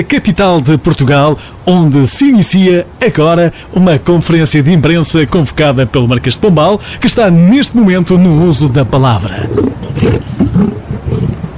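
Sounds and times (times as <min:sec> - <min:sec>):
speech: 0:00.0 - 0:10.8
lion roaring: 0:09.3 - 0:11.5.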